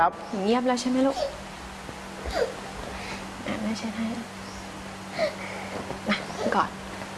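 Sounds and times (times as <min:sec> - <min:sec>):
speech: 0:00.0 - 0:01.4, 0:02.2 - 0:02.6, 0:03.4 - 0:04.4, 0:05.2 - 0:06.8
young child sobbing as they calm down after crying: 0:02.2 - 0:02.6.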